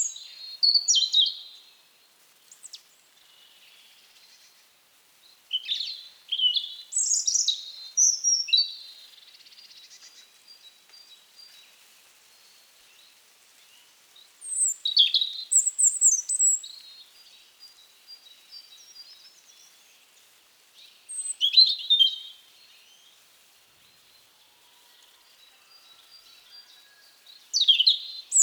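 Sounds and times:
European robin singing: 0:00.0 - 0:01.6, 0:05.5 - 0:11.3, 0:14.4 - 0:19.8, 0:20.8 - 0:23.1, 0:27.4 - 0:28.4.

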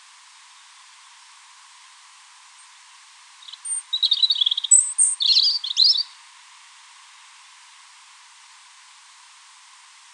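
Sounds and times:
European robin song: 0:03.4 - 0:06.2.

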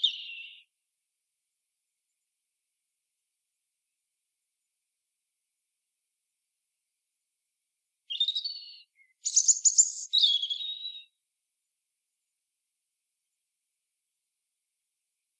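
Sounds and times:
European robin singing: 0:00.0 - 0:00.7, 0:08.1 - 0:11.2.

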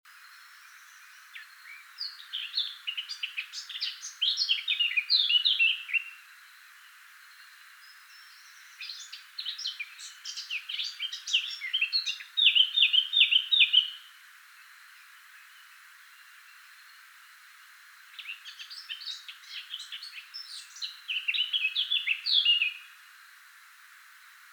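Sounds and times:
Eurasian blackcap song: 0:00.1 - 0:06.3, 0:07.3 - 0:14.1, 0:18.1 - 0:23.0.

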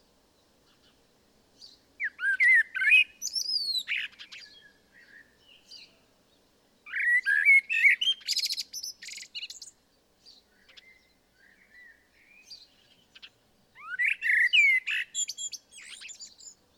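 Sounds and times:
common blackbird song: 0:00.0 - 0:16.7.

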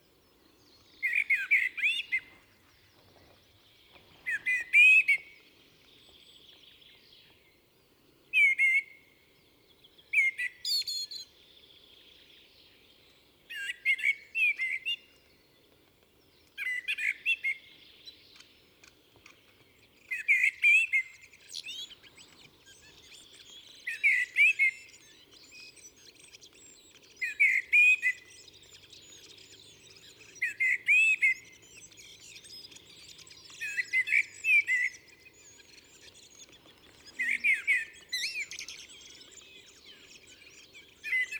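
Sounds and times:
common blackbird song: 0:00.0 - 0:41.3
other thin high bird calls: 0:20.1 - 0:41.3.

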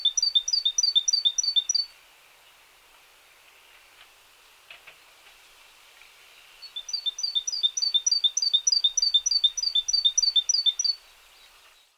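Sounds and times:
great tit song: 0:00.0 - 0:02.6, 0:06.3 - 0:11.7
hiss: 0:00.0 - 0:11.9.

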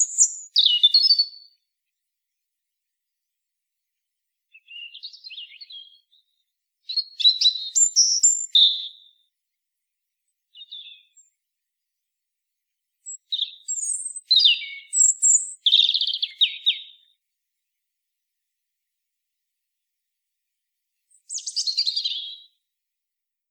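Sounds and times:
European robin singing: 0:00.0 - 0:01.7, 0:04.5 - 0:09.3, 0:10.5 - 0:11.4, 0:13.0 - 0:17.2, 0:21.1 - 0:22.6.

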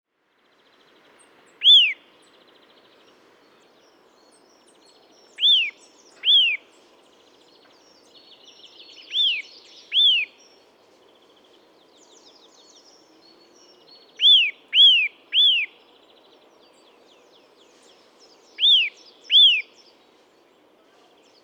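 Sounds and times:
Eurasian nuthatch whistling: 0:01.6 - 0:02.0, 0:05.4 - 0:06.6, 0:09.1 - 0:10.3, 0:14.2 - 0:15.7, 0:18.6 - 0:19.7.

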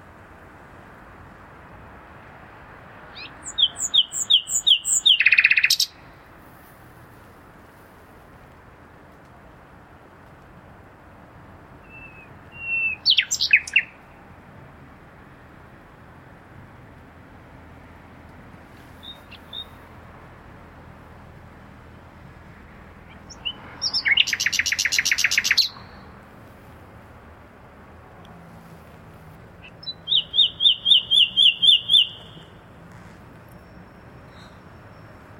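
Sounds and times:
common nightingale singing: 0:03.1 - 0:06.0, 0:11.8 - 0:14.2, 0:19.0 - 0:19.8, 0:23.0 - 0:26.2, 0:29.6 - 0:35.3.

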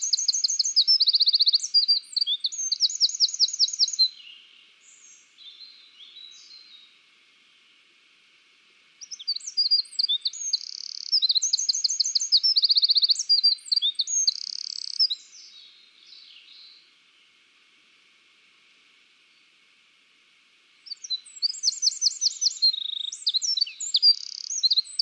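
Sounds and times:
Eurasian wren high trilling song: 0:00.0 - 0:06.9, 0:09.0 - 0:16.8, 0:20.9 - 0:25.0.

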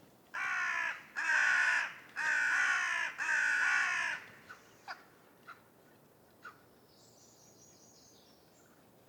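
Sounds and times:
Corvus corone calling: 0:00.4 - 0:05.0.

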